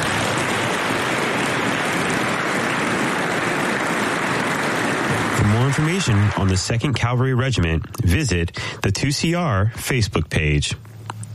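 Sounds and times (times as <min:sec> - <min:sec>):
applause for the Dragoon families: 0:00.0 - 0:08.4
speech: 0:05.8 - 0:10.9.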